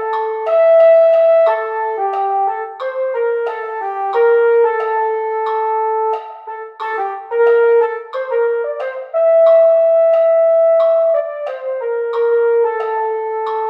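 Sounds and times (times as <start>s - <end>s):
mellophone playing slow practice exercises: 0.0s - 13.6s.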